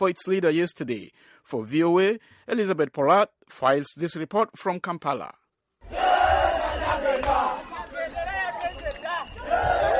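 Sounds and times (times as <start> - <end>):
speech: 0.0 - 5.4
crowd cheering at political rally: 5.8 - 9.9.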